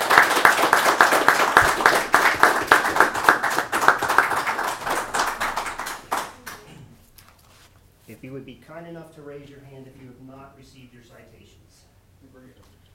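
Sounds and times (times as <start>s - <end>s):
audience applause: 0.0s - 6.7s
speech: 8.8s - 12.8s.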